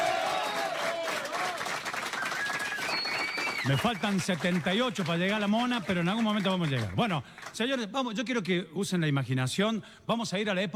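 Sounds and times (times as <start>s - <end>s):
people cheering and whistling: 0.0s - 4.3s
studio audience applause: 0.0s - 7.6s
speech: 3.6s - 10.7s.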